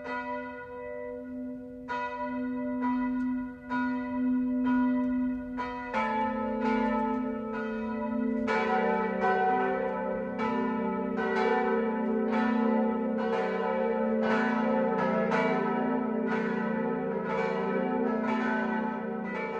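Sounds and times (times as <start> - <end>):
church bells ringing noon in Eusenheim in Unterfranken: 0.0 - 19.5.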